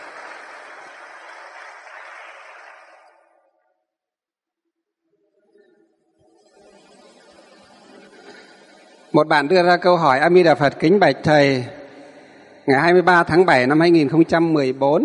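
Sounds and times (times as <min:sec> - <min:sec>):
room full of people clapping: 0:00.0 - 0:03.5
speech: 0:09.2 - 0:11.8, 0:12.7 - 0:15.0.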